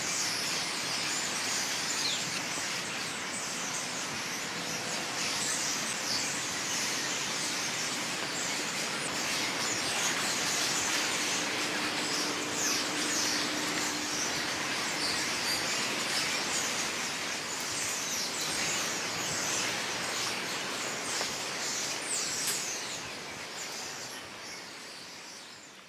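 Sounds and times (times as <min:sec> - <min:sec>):
birds chattering in a crowd: 0:00.1 - 0:24.9.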